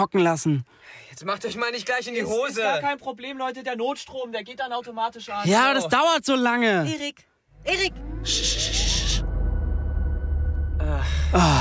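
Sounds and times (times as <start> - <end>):
speech: 0.0 - 9.0, 10.8 - 11.5
thunder rumbling: 7.6 - 11.5.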